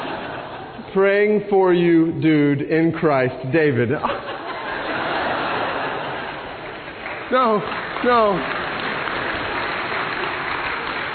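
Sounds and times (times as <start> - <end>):
laughter: 0.0 - 1.2, 3.7 - 7.0
speech: 1.0 - 4.3, 7.3 - 8.6
audience clapping: 5.3 - 11.1.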